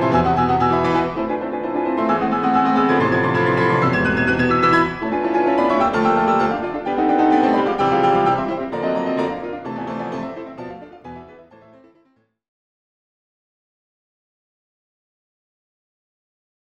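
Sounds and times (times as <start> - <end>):
piano: 0.0 - 12.2.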